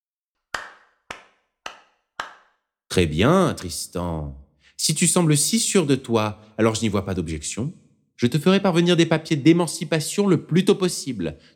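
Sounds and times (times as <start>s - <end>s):
father clapping sarcastically: 0.5s - 2.6s
speech: 2.9s - 11.5s.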